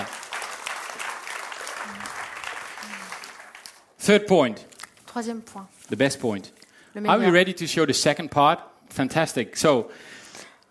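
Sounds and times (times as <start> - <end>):
audience clapping: 0.0 - 4.2
speech: 4.0 - 10.4.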